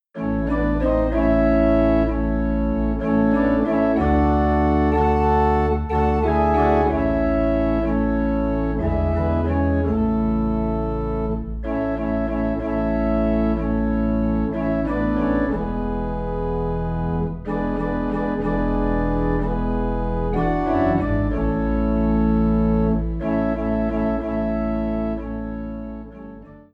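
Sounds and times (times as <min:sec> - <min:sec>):
low organ in A: 0:00.2 - 0:26.7.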